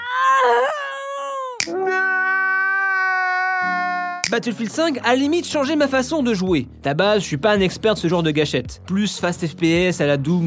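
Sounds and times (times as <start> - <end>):
video game female soldiers screaming in agony: 0.0 - 4.2
speech: 4.3 - 10.4.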